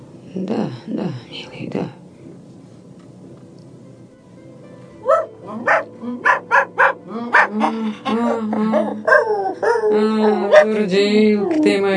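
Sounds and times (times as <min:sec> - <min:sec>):
speech: 0:00.4 - 0:01.9, 0:10.6 - 0:11.9
dog yelping barks: 0:05.0 - 0:07.5, 0:08.8 - 0:10.8
dog whimpering and whining: 0:05.1 - 0:11.8.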